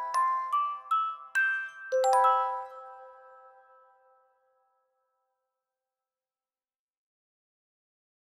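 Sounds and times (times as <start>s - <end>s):
music box arrangement: 0.0s - 3.9s.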